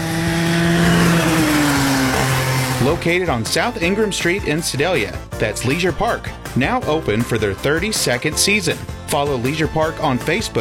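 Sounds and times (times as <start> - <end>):
go-kart engine droning on the race track at Leisure Park in Sedalia: 0.0 - 3.9
speech: 2.9 - 10.5.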